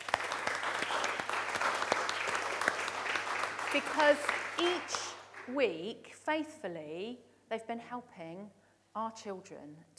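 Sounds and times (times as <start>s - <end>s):
audience round of applause: 0.0s - 5.5s
speech: 3.8s - 9.9s.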